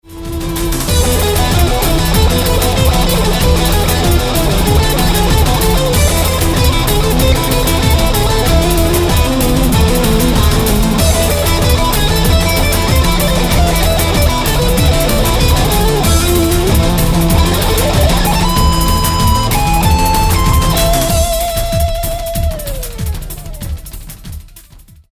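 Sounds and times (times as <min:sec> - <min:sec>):
Spanish rave music: 0:00.0 - 0:25.0.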